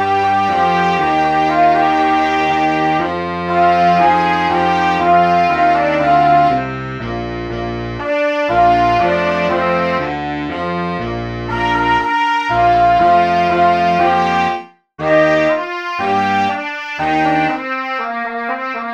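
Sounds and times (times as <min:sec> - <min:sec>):
pop song backing track without alto sax: 0:00.0 - 0:18.9.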